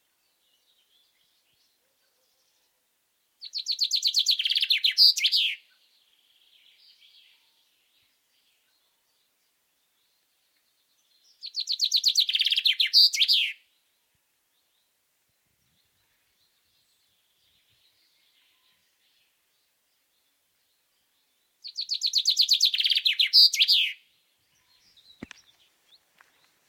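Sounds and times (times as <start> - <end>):
common chaffinch singing: 3.4 - 13.8, 15.6 - 26.6.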